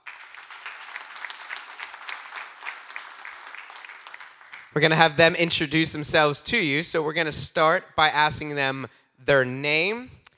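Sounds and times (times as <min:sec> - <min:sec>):
audience applause welcoming a panel: 0:00.0 - 0:05.0
speech: 0:04.7 - 0:10.2.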